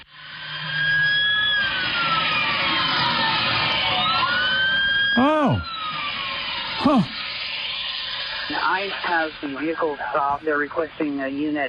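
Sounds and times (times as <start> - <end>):
emergency vehicle sirens: 0.0 - 8.6
speech: 6.9 - 7.1, 8.9 - 11.6.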